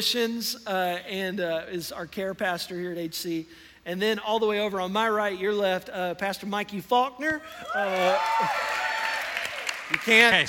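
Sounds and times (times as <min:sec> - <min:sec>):
speech: 0:00.0 - 0:08.9, 0:09.9 - 0:10.4
applause: 0:07.8 - 0:10.4.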